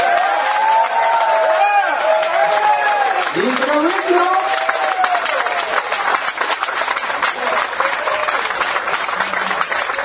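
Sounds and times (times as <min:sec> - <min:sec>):
round of applause from audience: 0:00.0 - 0:10.0.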